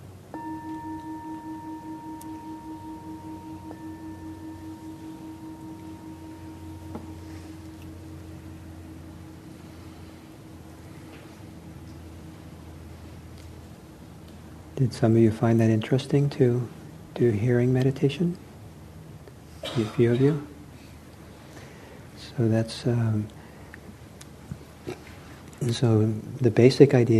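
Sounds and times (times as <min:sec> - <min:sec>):
steady hiss: 0:00.0 - 0:27.1
meditation bell ringing: 0:00.3 - 0:12.4
speech: 0:14.8 - 0:18.4, 0:19.8 - 0:20.6, 0:22.4 - 0:23.4, 0:25.7 - 0:27.1.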